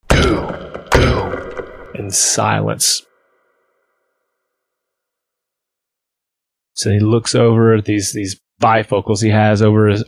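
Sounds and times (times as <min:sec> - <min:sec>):
gavel banging: 0:00.0 - 0:02.5
speech: 0:02.0 - 0:03.1, 0:06.8 - 0:10.0.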